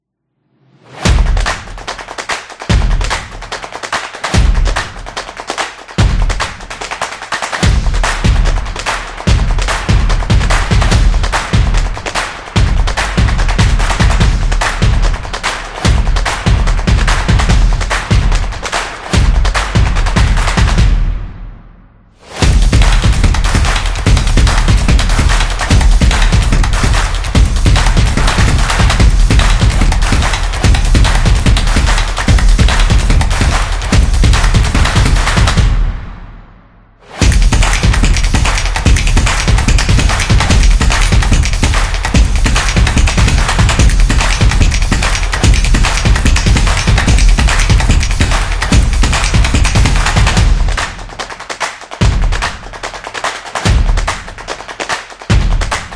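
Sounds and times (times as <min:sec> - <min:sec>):
soccer music: 0:00.4 - 0:21.6, 0:22.2 - 0:36.2, 0:37.1 - 0:55.9.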